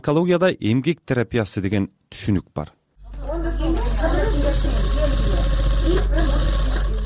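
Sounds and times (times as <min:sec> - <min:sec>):
speech: 0:00.0 - 0:03.3
sewing machine run by cancer patients in a charity fund office: 0:03.6 - 0:07.0.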